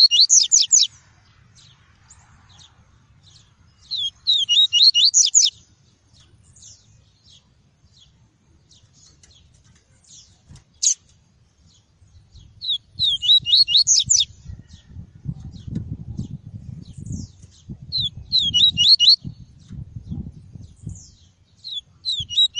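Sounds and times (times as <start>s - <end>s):
double-collared seedeater song of high twitters: 0.0s - 22.5s.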